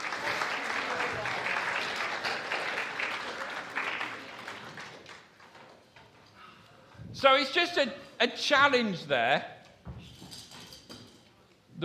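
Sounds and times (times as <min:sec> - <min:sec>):
audience round of applause: 0:00.0 - 0:05.8
speech: 0:07.2 - 0:09.5.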